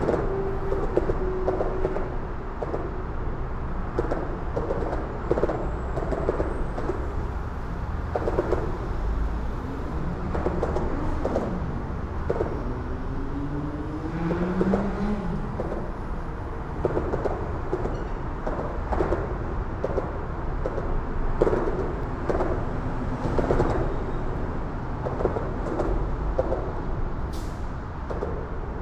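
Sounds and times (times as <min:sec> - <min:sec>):
moderate elevated urban traffic: 0:00.0 - 0:28.7.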